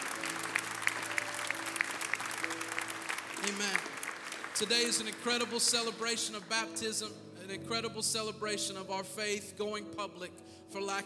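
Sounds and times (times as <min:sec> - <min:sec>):
audience clapping hands: 0:00.0 - 0:07.0
speech: 0:03.4 - 0:04.0, 0:04.6 - 0:11.0.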